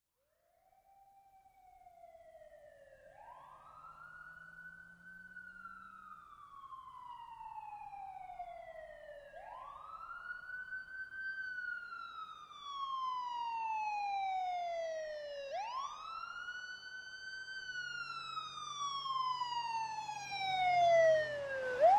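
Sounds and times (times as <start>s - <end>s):
ambulance siren: 0.6s - 21.9s.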